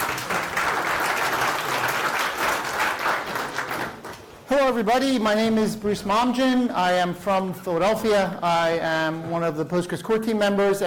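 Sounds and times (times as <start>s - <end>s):
round of applause: 0.0s - 4.4s
speech: 4.5s - 10.8s.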